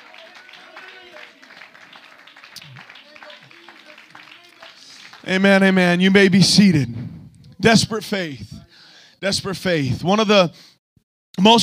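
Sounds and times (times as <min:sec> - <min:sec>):
audience clapping hands in praise: 0:00.0 - 0:06.0
many voices calling out and cheering in praise: 0:00.0 - 0:06.2
speech: 0:05.2 - 0:07.0, 0:07.6 - 0:08.6, 0:09.2 - 0:10.7, 0:11.4 - 0:11.6.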